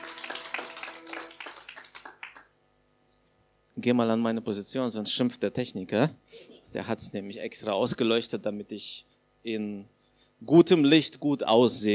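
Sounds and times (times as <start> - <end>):
audience applause for the band: 0.0 - 2.5
speech: 3.8 - 11.9.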